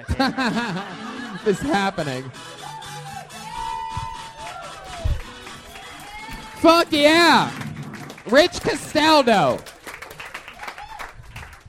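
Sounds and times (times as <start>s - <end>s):
speech: 0.0s - 2.6s, 6.6s - 7.6s, 8.2s - 9.7s
laughter: 0.0s - 3.5s
audience applause: 3.2s - 11.6s.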